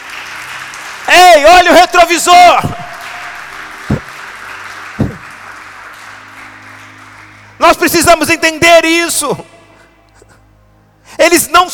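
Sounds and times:
audience applauding: 0:00.0 - 0:08.5
speech: 0:01.1 - 0:02.8, 0:07.6 - 0:09.6, 0:11.2 - 0:11.7.

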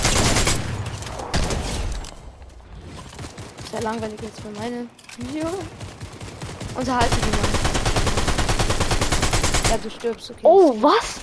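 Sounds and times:
video game mythic weapon gunfire: 0:00.0 - 0:01.8, 0:03.2 - 0:10.0
speech: 0:03.7 - 0:05.9, 0:06.8 - 0:07.6, 0:09.7 - 0:11.2.

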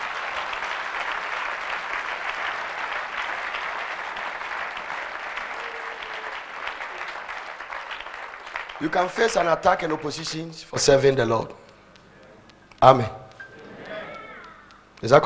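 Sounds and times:
audience clapping: 0:00.0 - 0:11.0
speech: 0:08.8 - 0:11.6, 0:12.8 - 0:13.2, 0:15.0 - 0:15.2.

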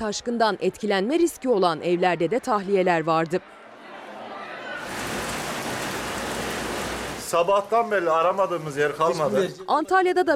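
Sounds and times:
speech: 0:00.0 - 0:03.6, 0:07.3 - 0:10.3
heavy rain: 0:04.8 - 0:09.2.

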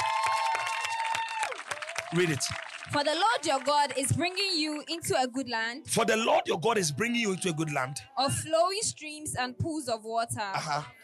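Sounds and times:
audience clapping: 0:00.0 - 0:05.0, 0:06.9 - 0:07.9
speech: 0:02.1 - 0:11.0.

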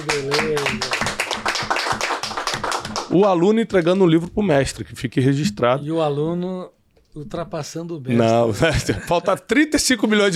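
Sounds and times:
speech: 0:00.0 - 0:01.0, 0:03.1 - 0:10.3
crowd applauding: 0:00.0 - 0:03.2
laughter: 0:08.4 - 0:10.2.

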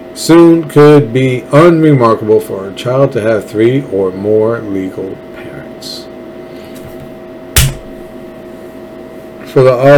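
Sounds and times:
quiet hum: 0:00.0 - 0:09.9
speech: 0:00.2 - 0:06.0, 0:09.5 - 0:09.9
hard slap on forehead: 0:07.6 - 0:08.0.

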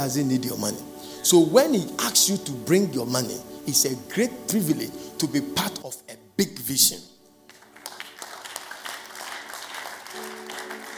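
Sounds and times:
speech: 0:00.0 - 0:07.2
audience clapping: 0:07.4 - 0:10.9.

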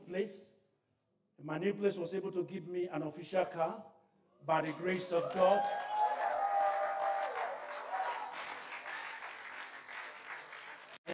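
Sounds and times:
speech: 0:00.1 - 0:00.5, 0:01.4 - 0:06.0
large audience clapping: 0:04.6 - 0:11.1.

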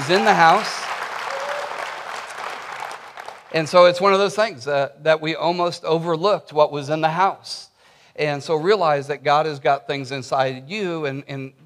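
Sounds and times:
audience applauding: 0:00.0 - 0:04.0
speech: 0:00.1 - 0:00.8, 0:03.5 - 0:11.6.

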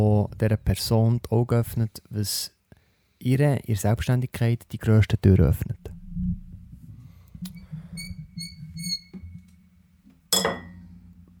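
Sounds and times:
speech: 0:00.0 - 0:02.6, 0:03.2 - 0:05.9
glasses clinking in a toast: 0:10.3 - 0:10.8.

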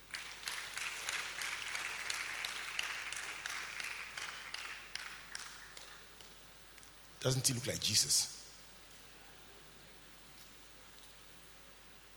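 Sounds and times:
audience applause: 0:00.0 - 0:06.0
speech: 0:07.2 - 0:08.4.

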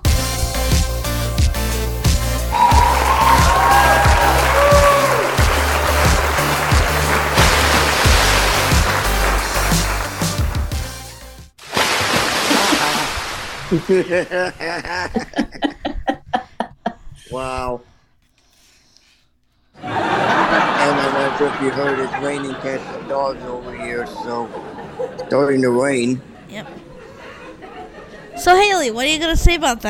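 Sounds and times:
upbeat music: 0:00.0 - 0:11.6
people laughing: 0:02.5 - 0:10.3, 0:12.4 - 0:17.0, 0:19.8 - 0:28.5
person dunked into a pool splashing: 0:05.8 - 0:10.3, 0:11.6 - 0:14.2
speech: 0:13.7 - 0:15.4, 0:17.3 - 0:17.9, 0:21.3 - 0:26.9, 0:28.4 - 0:29.8.

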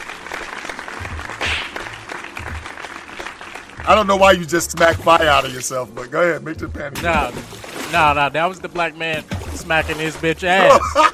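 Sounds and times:
applause: 0:00.0 - 0:04.2
speech: 0:03.9 - 0:11.1
laughter: 0:10.4 - 0:11.1.

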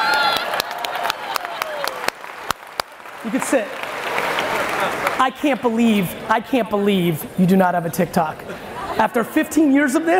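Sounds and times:
audience applause: 0:00.0 - 0:05.2
speech: 0:03.2 - 0:10.1.

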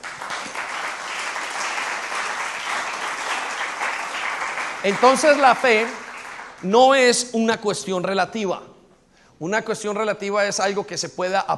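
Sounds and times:
audience applauding: 0:00.0 - 0:06.7
speech: 0:04.8 - 0:06.0, 0:06.6 - 0:08.7, 0:09.4 - 0:11.5.

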